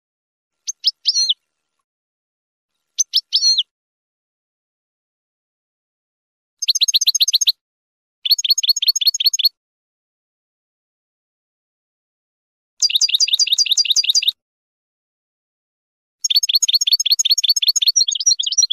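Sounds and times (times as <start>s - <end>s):
finch song chirps and trills: 0.6s - 1.4s, 2.9s - 3.7s, 6.6s - 7.6s, 8.2s - 9.5s, 12.8s - 14.4s, 16.2s - 18.7s.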